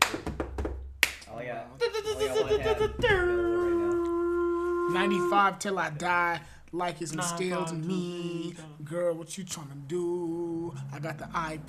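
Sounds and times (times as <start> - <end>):
hands clapping: 0.0 - 1.3
speech: 1.5 - 3.5, 4.9 - 11.6
laughter: 1.8 - 4.2.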